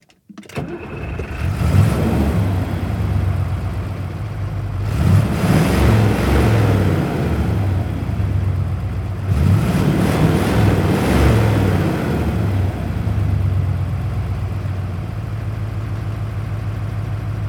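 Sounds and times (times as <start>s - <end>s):
diesel V8 engine starting: 0.3s - 17.3s.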